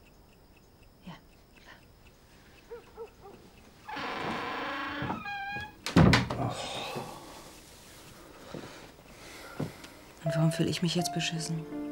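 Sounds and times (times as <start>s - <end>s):
door being pulled shut with a creak and thump: 3.9s - 7.1s
speech: 10.5s - 11.8s.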